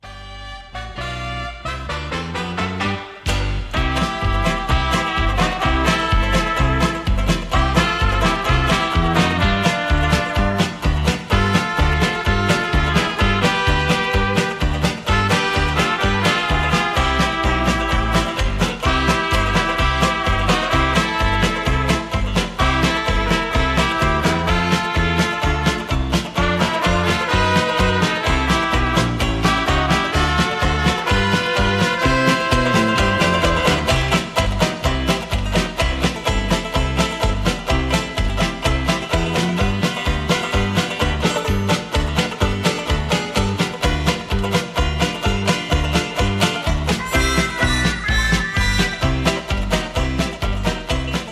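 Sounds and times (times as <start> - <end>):
instrumental polka: 0.0 - 51.3.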